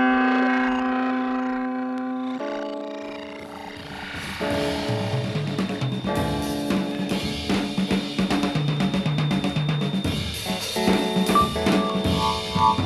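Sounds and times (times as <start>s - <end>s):
electric clavinet being played: 0.0s - 12.8s.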